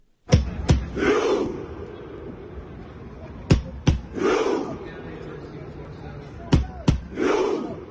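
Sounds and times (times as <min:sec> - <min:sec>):
loud massed crowd shout: 0:00.3 - 0:02.7, 0:03.5 - 0:05.3, 0:06.4 - 0:07.9
stadium crowd performing a Viking rowing chant: 0:00.3 - 0:05.4, 0:06.3 - 0:07.9.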